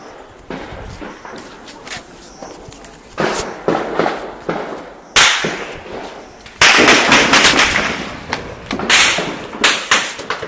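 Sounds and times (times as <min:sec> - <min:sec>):
gunfire over Mrauk-U town at night: 0:03.2 - 0:10.4.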